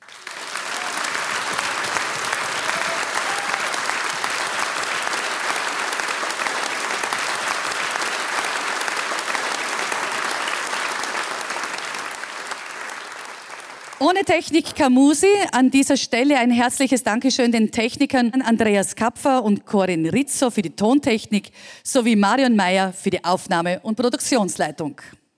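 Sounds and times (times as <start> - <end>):
audience applause in Frauenthal: 0.0 - 14.4
speech: 14.0 - 25.2.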